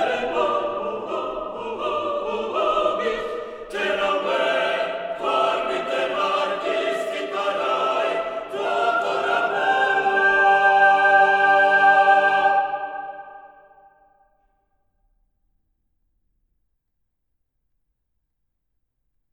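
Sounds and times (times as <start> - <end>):
solo voices singing a cappella: 0.0 - 13.8.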